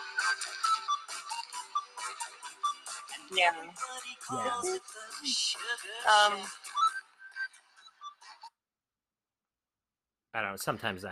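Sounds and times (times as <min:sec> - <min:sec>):
tinny oldies pop song played back over a phone line: 0:01.2 - 0:07.0
speech: 0:03.3 - 0:06.6, 0:10.4 - 0:11.0.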